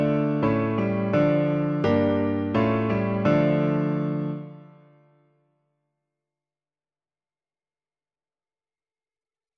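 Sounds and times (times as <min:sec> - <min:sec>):
piano: 0:00.0 - 0:05.6.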